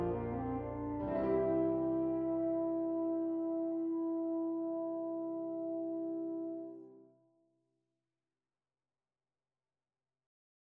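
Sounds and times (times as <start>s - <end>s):
euphonium playing: 0.0s - 6.7s.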